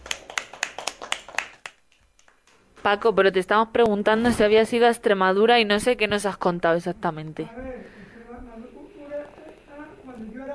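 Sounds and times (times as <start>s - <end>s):
small group applause: 0.0s - 2.6s
speech: 2.8s - 8.0s.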